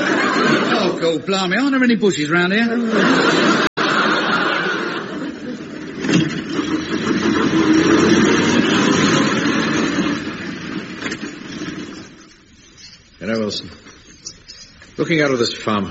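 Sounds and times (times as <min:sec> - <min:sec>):
laughter: 0:00.0 - 0:01.3, 0:02.6 - 0:06.1
speech: 0:01.0 - 0:03.7, 0:15.0 - 0:15.8
car engine roaring as the car drives off fast: 0:05.3 - 0:12.4.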